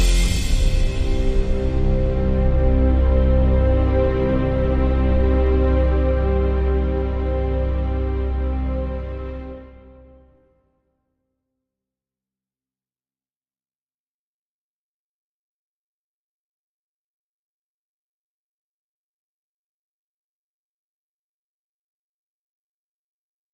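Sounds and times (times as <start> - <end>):
instrumental pad without vocals: 0.0 - 10.3.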